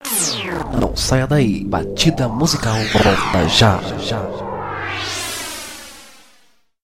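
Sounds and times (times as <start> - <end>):
music beat: 0.0 - 4.6.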